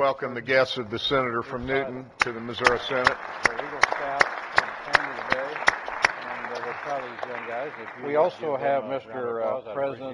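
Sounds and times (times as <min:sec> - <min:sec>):
speech: 0:00.0 - 0:03.8, 0:07.6 - 0:10.1
chamber applause for guests: 0:02.2 - 0:08.7.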